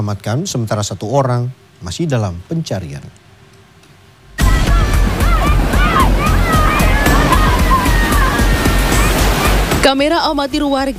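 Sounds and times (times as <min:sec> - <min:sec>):
speech: 0:00.0 - 0:03.2, 0:09.8 - 0:10.9
people calling out: 0:04.4 - 0:09.6
ocean waves surging on a beach: 0:04.4 - 0:10.0.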